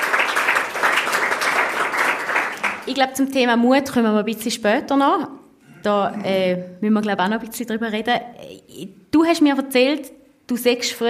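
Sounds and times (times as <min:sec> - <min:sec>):
studio audience applause during a talk show: 0:00.0 - 0:02.9
speech: 0:02.9 - 0:11.0.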